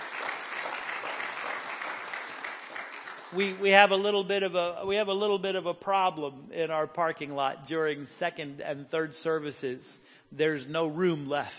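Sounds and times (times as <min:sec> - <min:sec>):
large audience applauding: 0:00.0 - 0:03.8
speech: 0:03.3 - 0:11.5.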